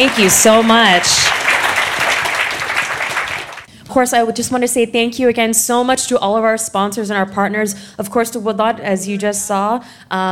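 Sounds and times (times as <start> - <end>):
speech: 0.0 - 1.4, 3.9 - 10.3
audience round of applause: 0.0 - 3.7.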